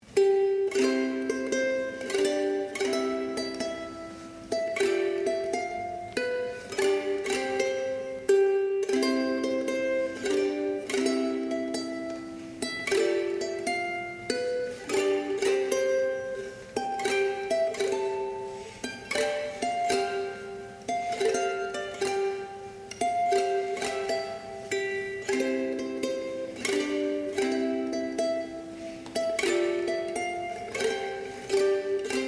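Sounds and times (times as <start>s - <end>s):
ukulele music: 0.0s - 32.2s.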